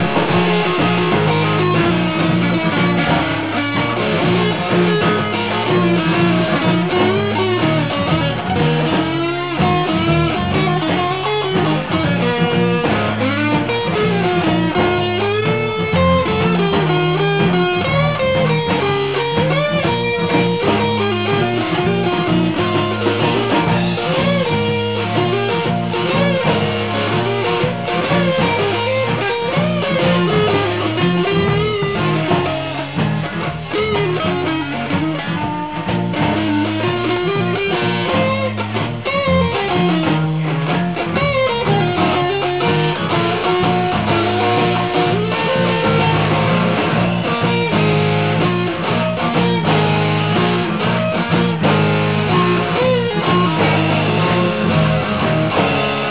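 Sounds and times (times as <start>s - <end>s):
rock music: 0.0s - 56.0s.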